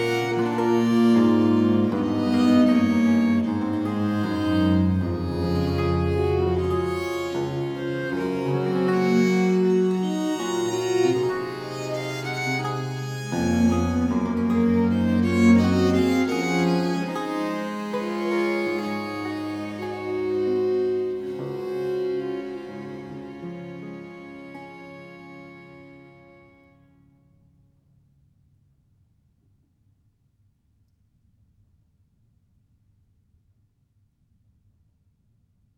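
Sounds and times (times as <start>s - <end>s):
viols playing early music suite in D minor: 0.0s - 26.6s.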